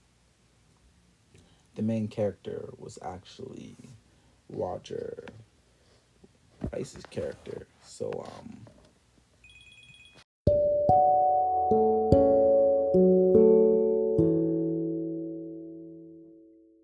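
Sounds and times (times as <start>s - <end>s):
speech: 1.4s - 5.5s, 6.7s - 8.7s
phone ringtone melody of chime-like notes: 9.4s - 15.9s.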